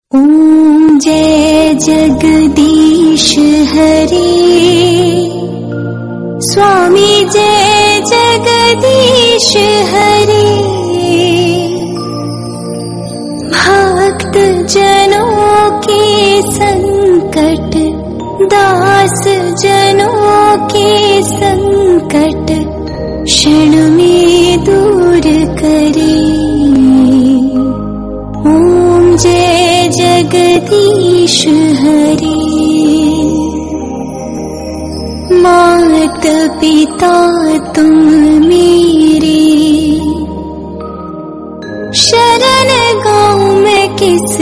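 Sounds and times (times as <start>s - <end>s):
soft devotional song: 0.1s - 44.4s.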